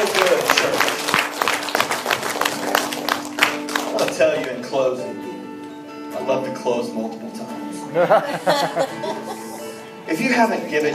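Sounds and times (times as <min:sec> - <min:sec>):
audience clapping: 0:00.0 - 0:04.7
speech: 0:06.3 - 0:09.4, 0:10.1 - 0:10.9
laughter: 0:07.9 - 0:09.8.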